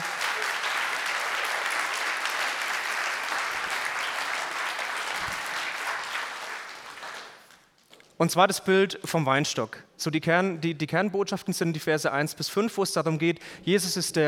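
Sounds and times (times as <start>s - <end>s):
audience applause: 0.0s - 7.7s
speech: 8.2s - 14.2s.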